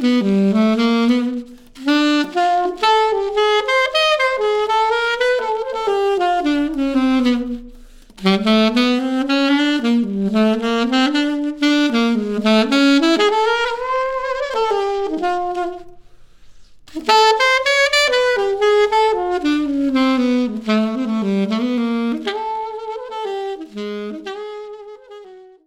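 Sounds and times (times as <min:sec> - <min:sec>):
solo saxophone: 0:00.0 - 0:25.6.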